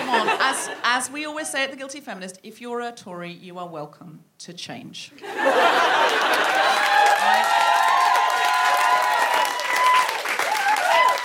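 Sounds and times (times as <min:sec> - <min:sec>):
laughter: 0:00.0 - 0:00.9, 0:05.2 - 0:07.8
speech: 0:00.5 - 0:07.8
whoops and cheering voices: 0:05.5 - 0:11.2
audience clapping: 0:05.8 - 0:11.2.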